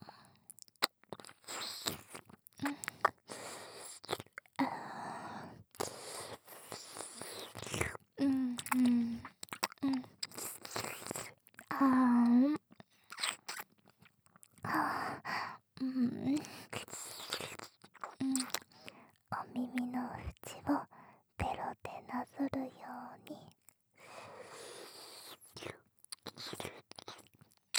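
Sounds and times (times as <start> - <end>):
ASMR ear-licking wet mouth sounds: 0.5 - 4.6, 5.7 - 14.6, 16.3 - 18.9, 24.6 - 27.7
soft whispering: 19.3 - 23.6.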